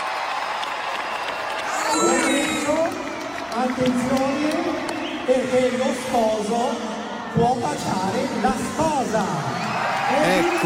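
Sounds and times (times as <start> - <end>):
theatre audience applause: 0.0 - 5.5, 9.5 - 10.6
speech: 3.6 - 10.6.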